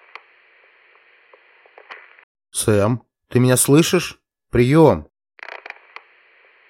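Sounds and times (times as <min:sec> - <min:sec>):
walkie-talkie speaker static hiss: 0:00.0 - 0:02.2, 0:05.5 - 0:06.6
crackles and pops: 0:00.0 - 0:02.3, 0:05.4 - 0:06.6
speech: 0:02.6 - 0:05.1.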